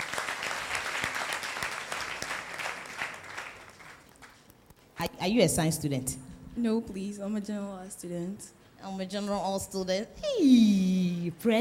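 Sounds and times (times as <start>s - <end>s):
audience applause: 0.0s - 4.4s
speech: 5.0s - 11.5s.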